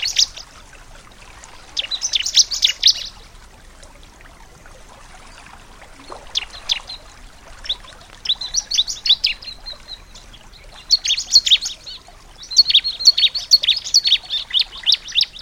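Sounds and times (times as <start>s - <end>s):
bar-winged prinia singing: 1.7s - 3.2s, 6.1s - 15.4s.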